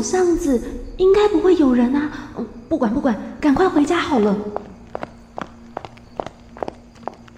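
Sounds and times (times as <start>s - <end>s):
speech: 0.0s - 4.7s
footsteps in an alley: 3.4s - 7.3s.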